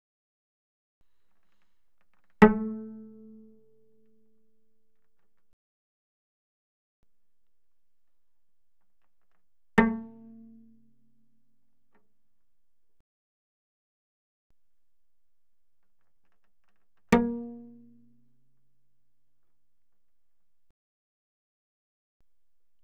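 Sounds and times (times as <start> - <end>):
cello pizzicato on the G string, very loud: 2.4 - 4.2, 9.8 - 11.0, 17.1 - 18.2.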